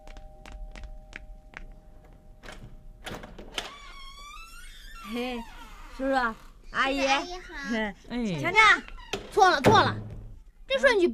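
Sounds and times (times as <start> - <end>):
door being opened: 2.4 - 6.5, 8.8 - 10.4
speech: 5.1 - 10.1, 10.7 - 11.1.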